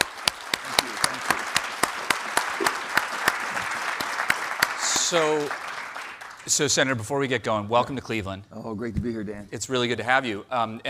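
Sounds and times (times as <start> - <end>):
audience applause welcoming Senator Joe Manchin at City Club of Cleveland: 0.0 - 7.0
speech: 5.1 - 5.6, 6.5 - 10.8.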